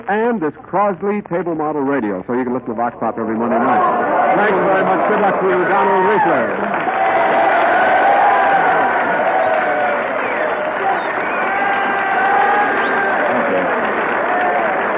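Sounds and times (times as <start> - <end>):
speech: 0.0 - 7.4
crowd voices and cheering: 3.2 - 14.9
studio audience applause: 3.6 - 14.9.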